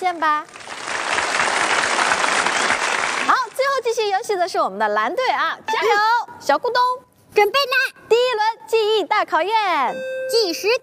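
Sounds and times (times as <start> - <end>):
speech: 0.0 - 0.6, 3.3 - 10.8
applause for a team answering correctly in a game: 0.4 - 3.6.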